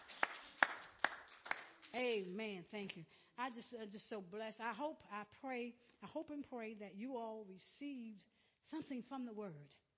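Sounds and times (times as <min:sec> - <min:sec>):
audience hand clapping: 0:00.0 - 0:02.0
speech: 0:02.0 - 0:09.8.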